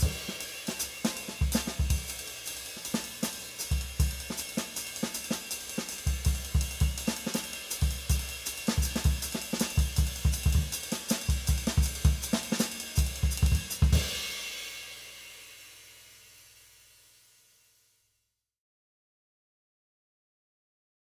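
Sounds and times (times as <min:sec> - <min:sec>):
uptempo bop drumming: 0:00.0 - 0:14.5.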